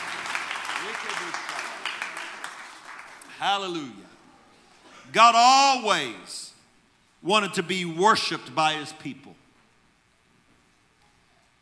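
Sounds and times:
audience hand clapping: 0.0 - 3.7
speech: 0.8 - 1.6, 3.4 - 4.2, 5.1 - 6.5, 7.2 - 9.4.

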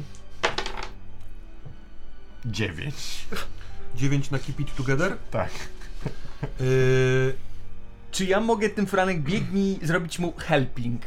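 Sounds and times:
dice rolling: 0.4 - 1.0
speech: 2.5 - 7.5, 8.1 - 11.0.

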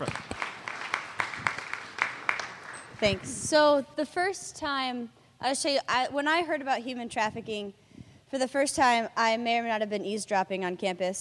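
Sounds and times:
audience clapping: 0.0 - 3.4
speech: 3.0 - 11.1.

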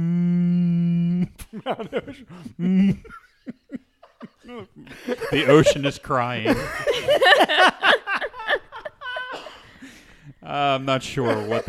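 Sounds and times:
voice imitating whale sounds: 0.0 - 1.5
speech: 1.3 - 3.6, 4.5 - 7.8, 10.5 - 11.6
laughter: 1.5 - 10.1, 10.9 - 11.6.

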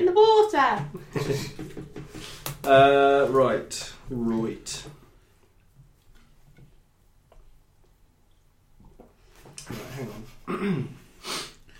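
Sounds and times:
speech: 0.2 - 1.6, 2.6 - 4.9, 10.0 - 11.0
person gulping on the microphone: 10.5 - 11.0.

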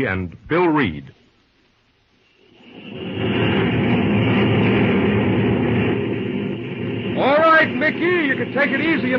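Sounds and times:
speech: 0.0 - 1.2, 7.2 - 9.1
locomotive running on the rails: 2.7 - 9.1.

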